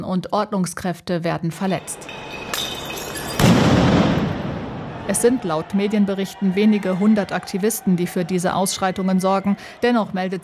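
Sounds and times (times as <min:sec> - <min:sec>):
speech: 0:00.0 - 0:02.4, 0:05.1 - 0:10.4
firecrackers banging at a street protest: 0:01.9 - 0:05.4.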